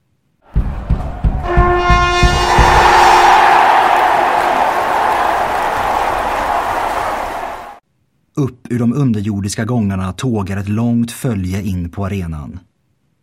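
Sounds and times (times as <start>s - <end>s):
roaring arena crowd cheering: 0.5s - 7.8s
bright trumpet fanfare: 1.4s - 7.8s
speech: 8.4s - 12.7s.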